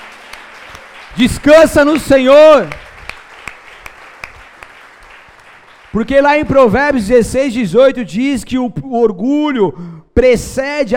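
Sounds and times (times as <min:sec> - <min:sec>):
audience applauding loudly: 0:00.0 - 0:06.8
speech: 0:01.2 - 0:02.8, 0:06.0 - 0:10.9.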